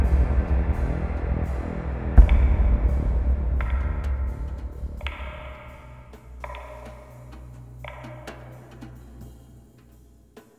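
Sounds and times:
bass drums at an airport: 0.0s - 8.4s.

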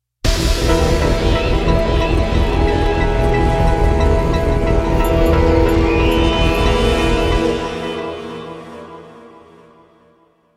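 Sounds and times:
defeat music: 0.3s - 10.1s.

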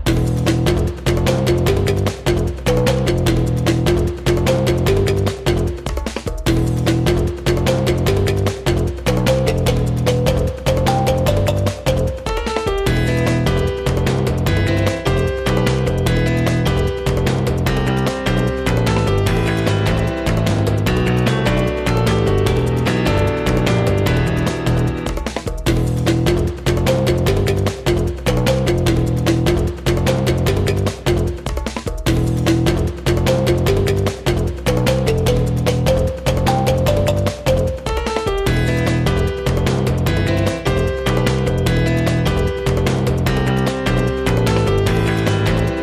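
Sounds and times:
battle background music: 0.1s - 45.8s.

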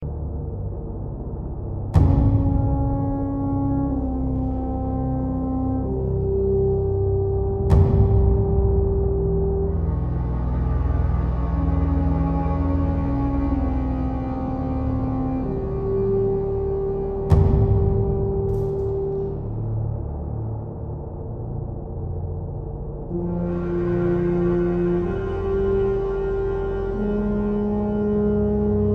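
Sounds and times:
dwarven throne hall instrumental ambience: 0.0s - 28.9s.

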